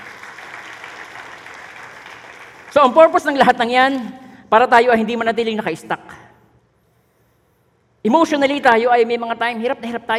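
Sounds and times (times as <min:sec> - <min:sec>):
church congregation applauding during a sermon: 0:00.0 - 0:03.4
speech: 0:02.8 - 0:06.2, 0:08.0 - 0:10.1.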